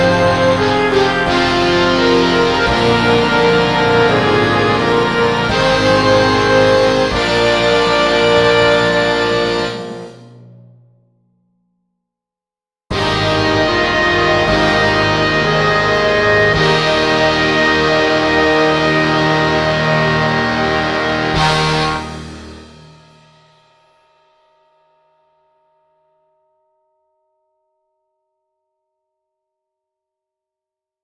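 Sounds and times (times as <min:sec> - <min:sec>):
orchestral rock remix: 0:00.0 - 0:10.2, 0:12.9 - 0:22.7.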